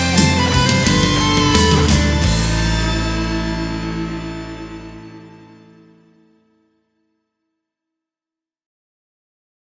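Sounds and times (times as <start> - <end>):
guitar solo: 0.0 - 6.4.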